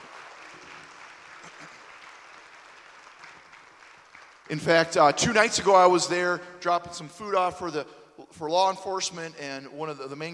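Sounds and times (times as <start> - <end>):
audience applause: 0.0 - 4.6
speech: 4.5 - 10.3.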